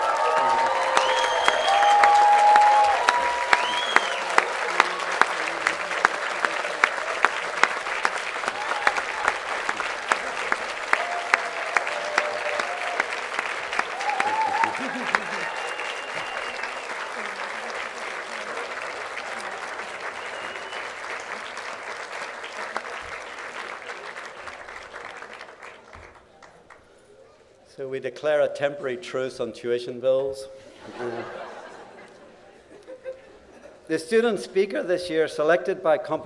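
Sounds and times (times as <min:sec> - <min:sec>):
graduates applauding: 0:00.0 - 0:26.9
laughter: 0:09.5 - 0:10.9, 0:14.0 - 0:19.7, 0:30.6 - 0:33.9
speech: 0:28.0 - 0:31.4, 0:33.9 - 0:36.2.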